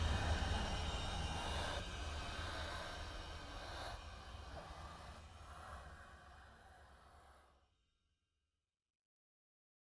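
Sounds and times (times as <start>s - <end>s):
dark ambience: 0.0s - 6.1s.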